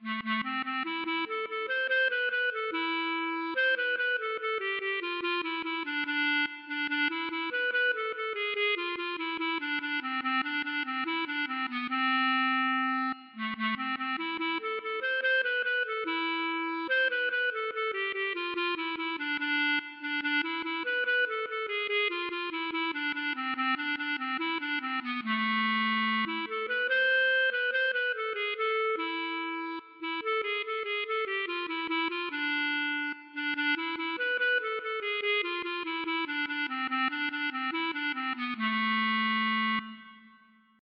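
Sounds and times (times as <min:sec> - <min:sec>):
klezmer music: 0:00.0 - 0:40.8.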